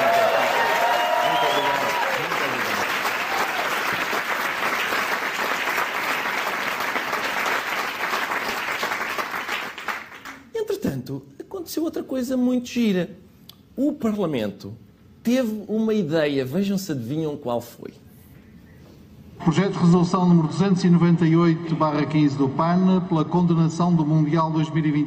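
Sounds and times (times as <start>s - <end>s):
audience applause: 0.0s - 10.4s
speech: 12.1s - 13.2s, 13.8s - 18.0s, 19.4s - 25.0s.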